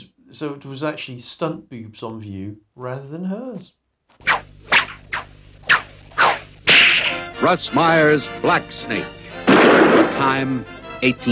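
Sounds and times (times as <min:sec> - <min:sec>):
speech: 0:00.4 - 0:03.8, 0:07.4 - 0:11.3
whip crack: 0:04.2 - 0:07.3, 0:09.5 - 0:10.2.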